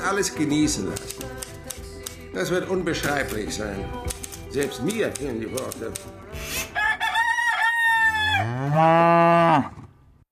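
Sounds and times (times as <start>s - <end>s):
speech: 0.1s - 1.3s, 2.4s - 6.5s, 8.4s - 9.8s
rooster crowing on a farm: 6.8s - 9.7s
cattle mooing on a farm: 8.1s - 9.9s.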